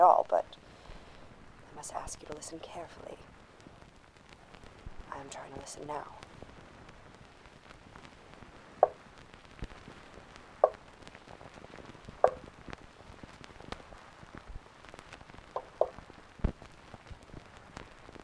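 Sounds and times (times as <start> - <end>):
speech: 0.0 - 0.6, 1.8 - 3.3, 5.2 - 6.2
faint steady hiss: 0.0 - 18.2
sharp knocks: 12.2 - 12.4, 15.6 - 16.0.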